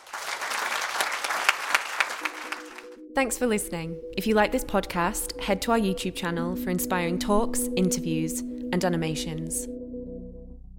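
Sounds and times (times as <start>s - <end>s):
audience applause: 0.0s - 3.0s
speech: 3.2s - 9.8s.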